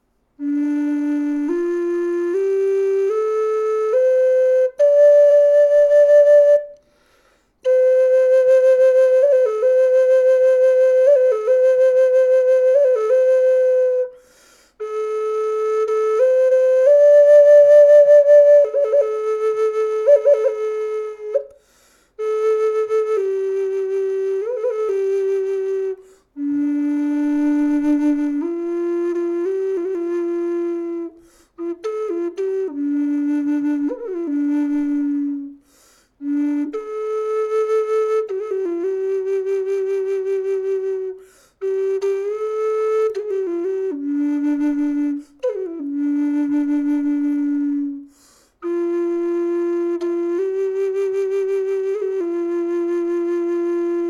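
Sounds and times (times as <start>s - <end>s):
flute: 0.0s - 54.0s.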